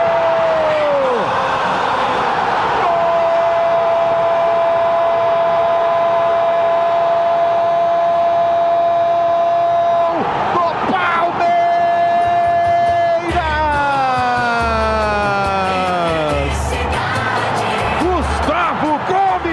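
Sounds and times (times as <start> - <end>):
stadium crowd roaring after a penalty goal: 0.0 - 19.5
pounding rhythmic drum beats: 12.2 - 19.5.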